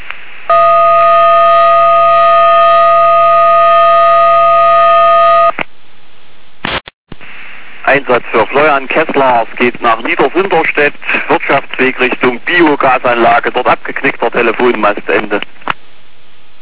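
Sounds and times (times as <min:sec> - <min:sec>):
steady alarm siren tone: 0:00.5 - 0:05.5
speech: 0:08.1 - 0:15.6.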